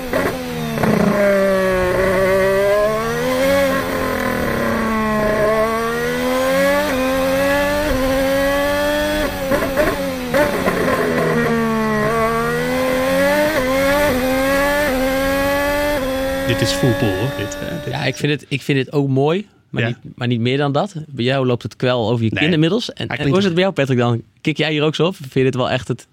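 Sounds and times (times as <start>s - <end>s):
Honda Formula 1 turbo engine in qualifying mode: 0.0s - 18.2s
speech: 16.7s - 26.1s.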